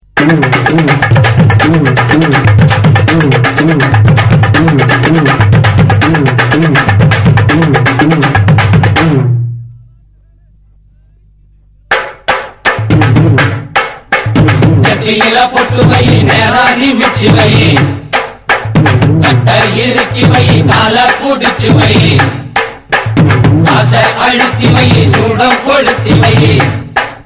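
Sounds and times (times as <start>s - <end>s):
Tamil heavy beat music: 0.0s - 9.3s, 11.9s - 27.2s.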